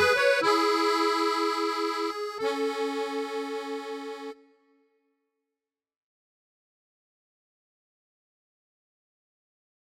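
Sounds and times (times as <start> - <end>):
cumbia accordion music: 0.0 - 4.6.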